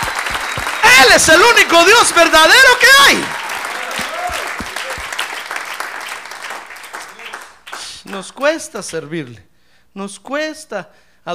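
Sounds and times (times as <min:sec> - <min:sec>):
audience applause: 0:00.0 - 0:08.5
speech: 0:01.0 - 0:03.4, 0:08.1 - 0:11.3.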